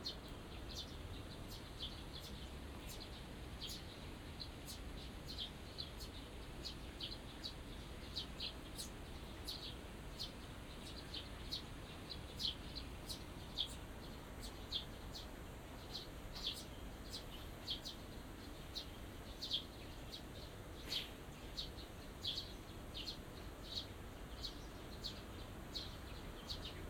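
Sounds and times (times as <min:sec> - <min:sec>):
small birds chirping: 0:00.0 - 0:26.8.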